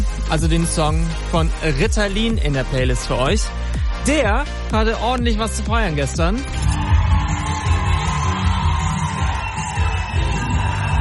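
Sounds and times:
speech: 0.3s - 6.8s
concert crowd cheering and yelling: 6.4s - 10.9s
whoops and shouts: 6.6s - 10.9s.

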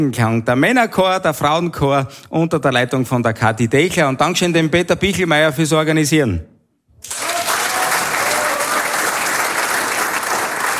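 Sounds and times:
speech: 0.0s - 7.2s
audience applause: 7.0s - 10.7s.

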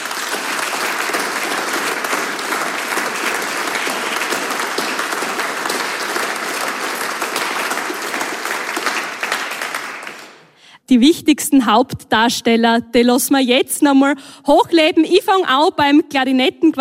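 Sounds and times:
audience applause: 0.0s - 10.6s
speech: 10.9s - 16.7s.

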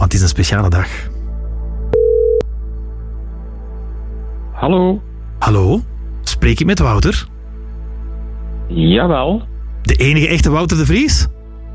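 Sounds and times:
speech: 0.2s - 1.1s, 4.6s - 7.3s, 8.7s - 11.4s
telephone line beep: 1.9s - 2.4s.

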